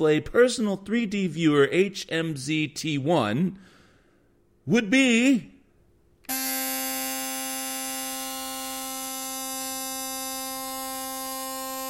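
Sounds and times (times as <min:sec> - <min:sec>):
speech: 0:00.0 - 0:03.8, 0:04.7 - 0:05.5
electric toothbrush buzzing: 0:06.3 - 0:11.8.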